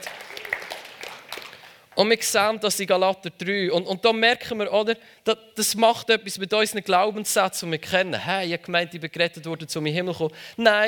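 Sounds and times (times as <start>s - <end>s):
audience clapping: 0.0s - 2.0s
speech: 2.0s - 10.8s.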